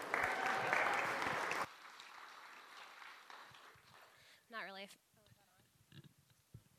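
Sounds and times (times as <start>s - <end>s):
audience applause: 0.0s - 4.3s.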